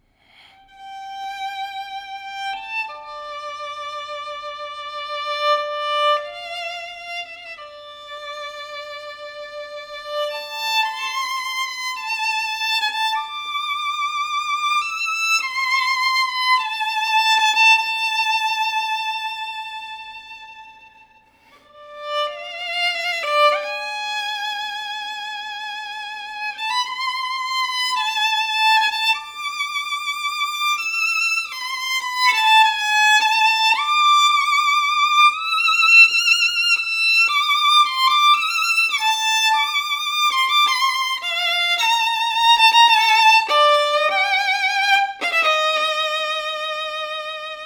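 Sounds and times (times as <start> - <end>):
violin: 0.0 - 47.6.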